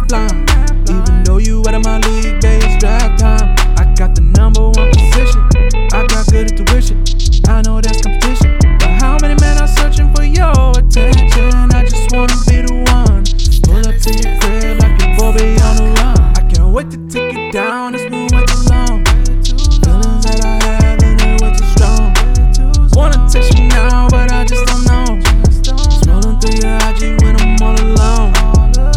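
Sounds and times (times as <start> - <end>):
unmixed autotuned hip hop vocals: 0.0 - 28.9.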